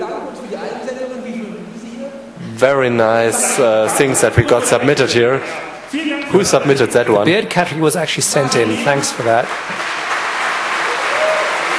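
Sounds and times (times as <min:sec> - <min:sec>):
speech: 0:02.6 - 0:10.0
audience at a category competition clapping: 0:08.4 - 0:11.7.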